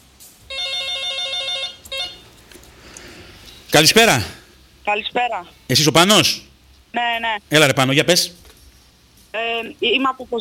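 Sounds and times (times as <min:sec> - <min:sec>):
telephone ringing with a call-in to a radio show: 0:00.4 - 0:02.3
speech: 0:03.7 - 0:08.4, 0:09.3 - 0:10.4.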